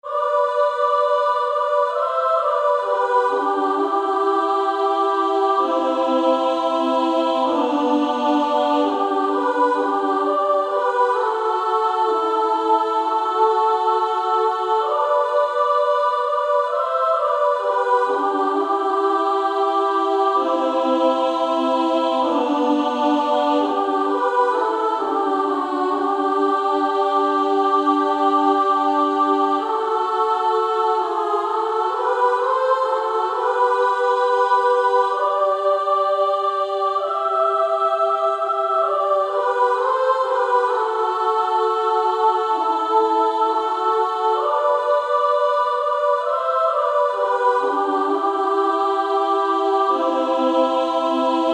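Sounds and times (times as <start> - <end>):
female choir singing: 0.0 - 51.5.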